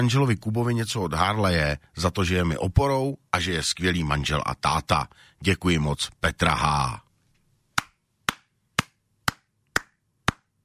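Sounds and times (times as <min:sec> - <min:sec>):
speech: 0:00.0 - 0:07.0
sharp hand claps: 0:07.8 - 0:10.6.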